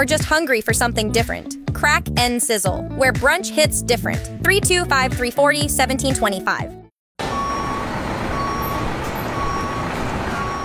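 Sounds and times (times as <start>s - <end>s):
speech: 0.0s - 6.8s
forklift engine rumble: 7.2s - 10.6s
forklift reversing alarm beeps: 7.3s - 10.6s.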